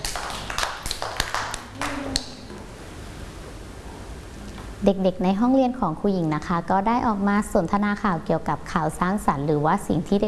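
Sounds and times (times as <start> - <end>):
group of children clapping hands: 0.0 - 2.5
speech: 4.8 - 10.2.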